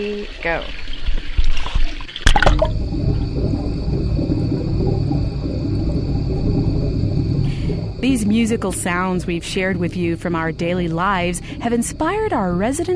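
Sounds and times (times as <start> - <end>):
speech: 0.0 - 0.9, 8.0 - 12.9
water sloshing: 0.5 - 12.9
low rumble heard underwater with ears submerged: 2.4 - 12.9.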